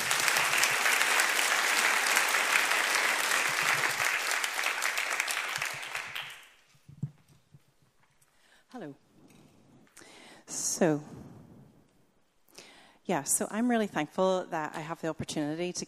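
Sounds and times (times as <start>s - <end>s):
audience applauding to welcome a woman giving testimony: 0.0s - 6.7s
speech: 10.8s - 11.2s, 13.1s - 15.8s.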